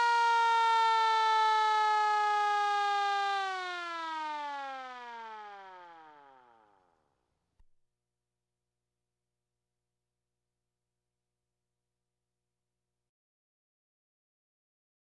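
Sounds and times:
police sirens: 0.0 - 7.0.

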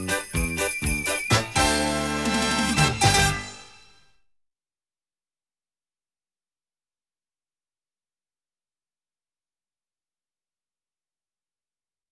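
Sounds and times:
Christmas jingle music: 0.0 - 4.0.

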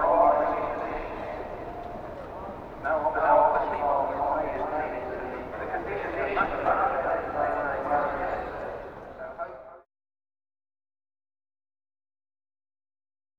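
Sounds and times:
outdoor event crowd ambience: 0.0 - 9.8.

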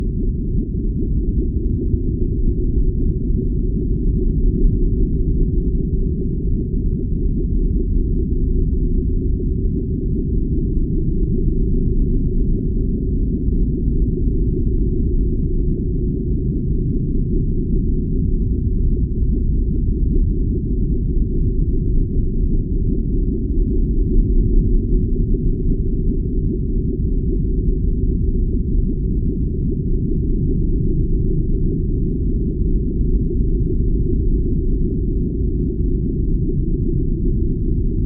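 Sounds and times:
nuclear submarine: 0.0 - 38.0.

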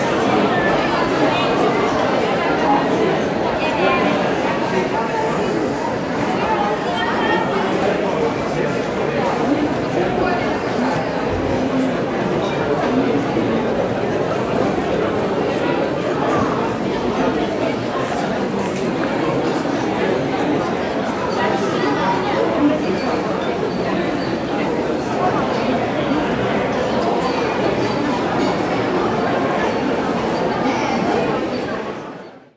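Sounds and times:
busy restaurant cafeteria hall ambience: 0.0 - 32.4.

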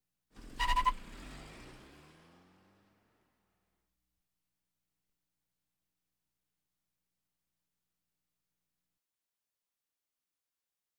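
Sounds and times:
various automobiles: 0.4 - 3.6.

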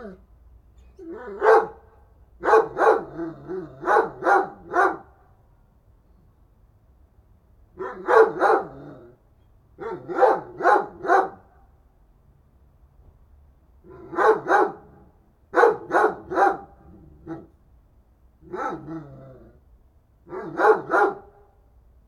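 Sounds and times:
dog barking: 1.0 - 5.2, 7.8 - 8.8, 9.8 - 11.5, 13.9 - 17.5, 18.5 - 19.1, 20.3 - 21.5.

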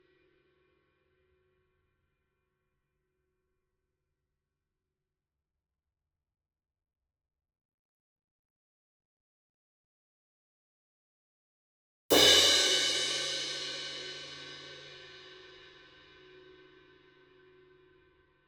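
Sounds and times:
crash cymbal hit hard with a medium beater: 12.1 - 15.4.

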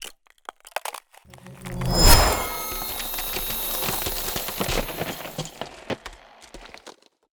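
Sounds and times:
ice spell cold whooshes: 1.3 - 5.4.

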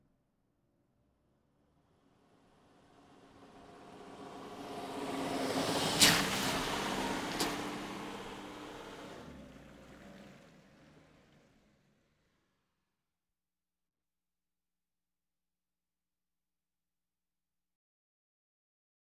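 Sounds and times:
various automobiles: 1.0 - 12.6.

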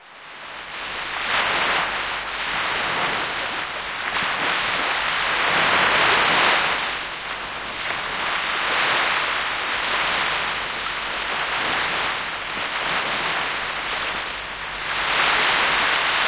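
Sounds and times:
sea: 0.0 - 16.2.

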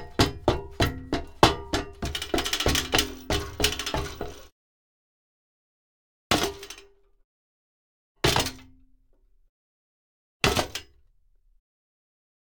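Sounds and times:
metal grate rattling: 0.0 - 4.5.

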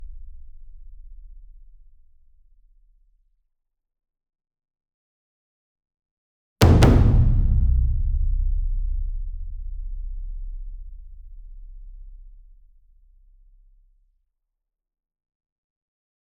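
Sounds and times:
single 60 inch taiko drum hit with double hard beater medium: 6.6 - 11.2.

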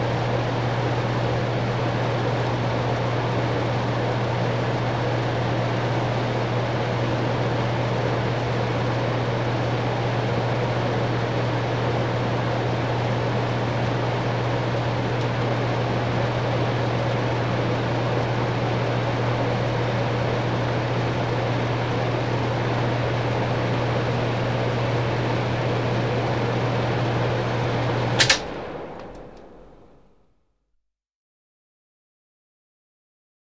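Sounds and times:
air conditioning: 0.0 - 30.0.

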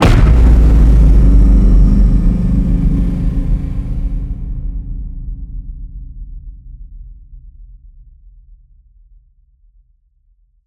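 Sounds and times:
low sci-fi cinematic hit: 0.0 - 6.8.

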